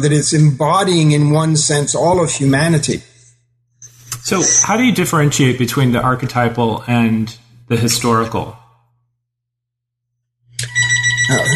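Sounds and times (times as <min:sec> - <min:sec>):
speech: 0:00.0 - 0:03.1, 0:04.3 - 0:08.6, 0:11.3 - 0:11.5
telephone ringing: 0:10.6 - 0:11.5.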